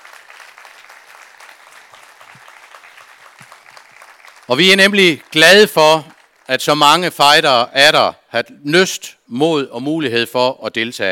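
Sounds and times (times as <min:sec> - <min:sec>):
big round of applause: 0:00.0 - 0:07.0
speech: 0:04.5 - 0:11.1.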